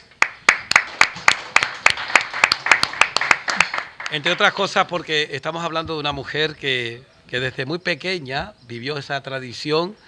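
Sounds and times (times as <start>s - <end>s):
audience applause: 0.2s - 4.7s
speech: 4.1s - 10.0s.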